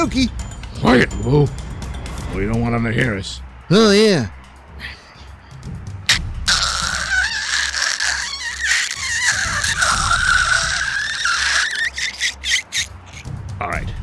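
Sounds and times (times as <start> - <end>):
speech: 0.0 - 1.7, 2.3 - 5.0
glass cutter scoring a window: 6.5 - 13.2.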